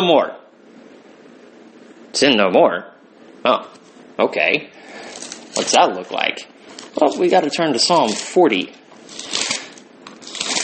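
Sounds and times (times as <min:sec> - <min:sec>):
speech: 0:00.0 - 0:00.4, 0:02.1 - 0:09.4
book pages rustling: 0:05.1 - 0:05.8, 0:06.7 - 0:08.4, 0:09.0 - 0:10.6.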